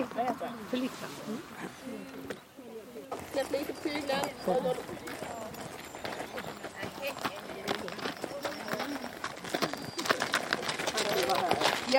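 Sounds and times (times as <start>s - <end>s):
speech: 0.6s - 1.5s, 3.5s - 5.1s
hooves of horses walking in line at a slow walk: 3.1s - 11.9s.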